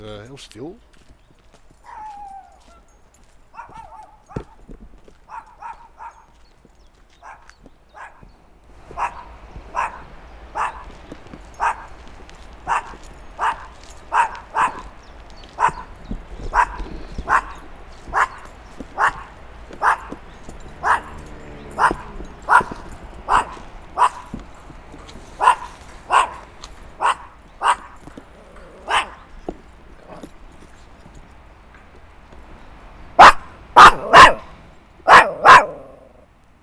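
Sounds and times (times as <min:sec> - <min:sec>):
small dog barking threateningly at a person: 0:01.7 - 0:36.3.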